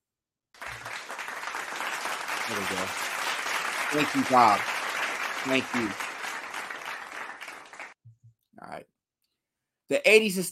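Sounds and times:
applause: 0.6 - 8.0
speech: 2.5 - 3.1, 3.9 - 4.7, 5.4 - 6.0, 9.9 - 10.4.

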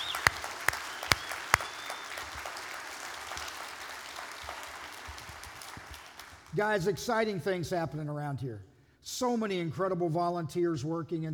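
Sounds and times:
audience applause: 0.0 - 6.6
speech: 6.6 - 11.3.

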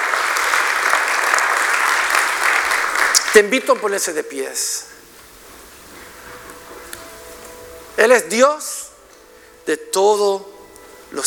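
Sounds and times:
church audience applauding: 0.0 - 4.1
speech: 3.3 - 5.0, 8.0 - 8.9, 9.6 - 10.5.

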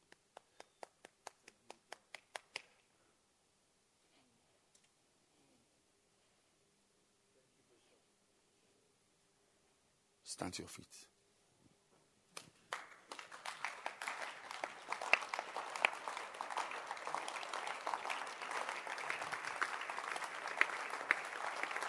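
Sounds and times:
audience clapping: 0.0 - 2.8, 12.4 - 21.8
speech: 10.3 - 11.2.

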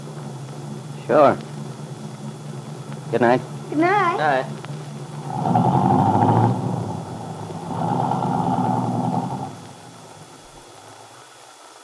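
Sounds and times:
car engine pulling off and driving away: 0.0 - 11.4
speech: 1.1 - 1.5, 3.1 - 4.6.

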